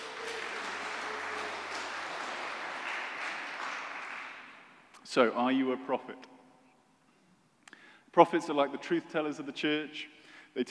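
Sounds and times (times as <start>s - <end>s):
audience applause: 0.0s - 4.9s
speech: 5.2s - 6.4s, 8.2s - 10.6s.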